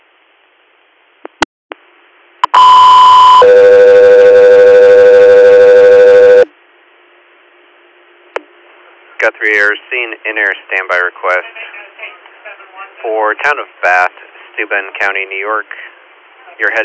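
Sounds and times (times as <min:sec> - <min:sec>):
radio dispatch alert tones: 0:02.4 - 0:06.5
speech: 0:09.5 - 0:11.8, 0:13.0 - 0:15.8, 0:16.6 - 0:16.8.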